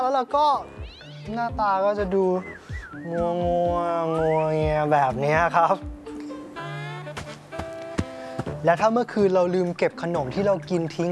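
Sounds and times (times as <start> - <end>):
speech: 0.2 - 6.0, 8.6 - 11.1
cat yowling while fighting with dog: 0.7 - 1.5.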